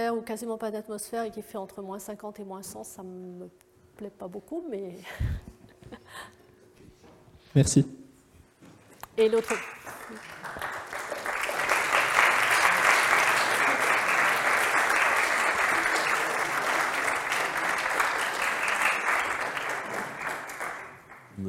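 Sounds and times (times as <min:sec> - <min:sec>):
speech: 0:00.0 - 0:05.5, 0:07.6 - 0:08.0, 0:09.2 - 0:10.3
audience applause after a lecture: 0:09.4 - 0:21.4.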